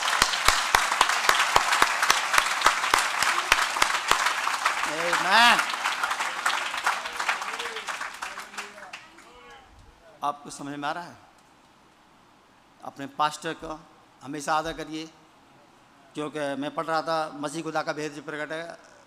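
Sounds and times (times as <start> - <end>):
clapping: 0.0 - 9.4
speech: 5.3 - 5.7, 10.3 - 11.3, 12.8 - 15.2, 16.2 - 18.9.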